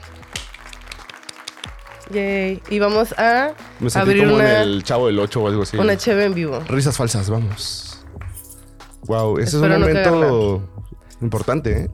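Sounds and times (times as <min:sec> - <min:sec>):
applause: 0:00.0 - 0:08.6
speech: 0:02.1 - 0:07.9, 0:09.1 - 0:11.9.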